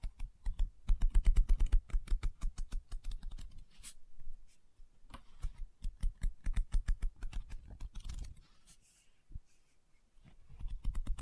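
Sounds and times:
fingers tapping rapidly on a book: 0.0 - 3.6, 5.1 - 8.4, 10.6 - 11.1.

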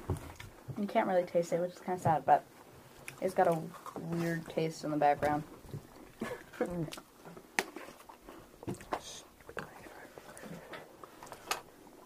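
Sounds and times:
speech: 0.8 - 2.6, 3.2 - 5.6, 6.6 - 7.1
chewing: 3.0 - 4.5, 5.2 - 11.4.

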